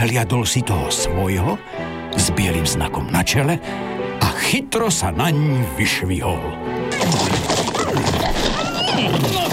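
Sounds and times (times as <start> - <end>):
speech: 0.0 - 9.5
horses whinnying: 6.9 - 9.5.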